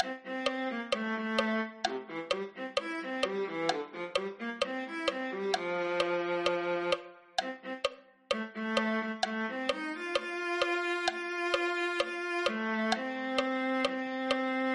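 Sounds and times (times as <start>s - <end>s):
viola: 0.0s - 14.7s.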